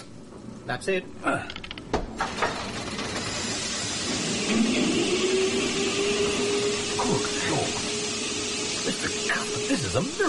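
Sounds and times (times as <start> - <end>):
speech: 0.7 - 1.6, 8.9 - 10.2
engine driving geared machinery: 2.2 - 10.2.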